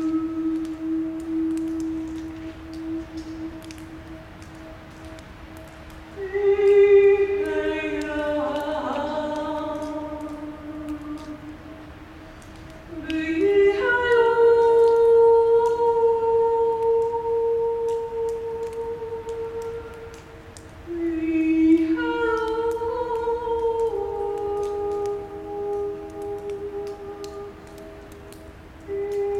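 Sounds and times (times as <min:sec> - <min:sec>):
person singing in a tunnel: 0:00.0 - 0:29.3.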